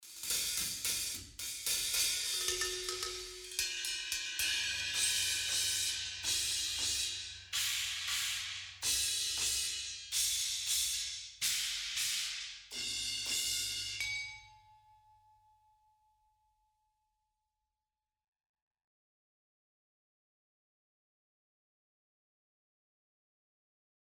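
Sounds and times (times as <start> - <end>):
cymbals: 0.0 - 14.7.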